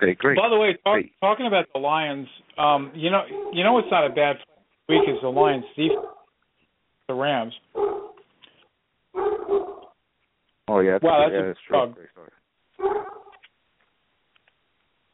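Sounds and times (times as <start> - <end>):
speech: 0.0 - 6.2, 7.1 - 8.0, 10.7 - 13.2
250-pound dog barking outside: 2.9 - 6.3, 7.7 - 8.2, 9.2 - 10.0, 12.8 - 13.4.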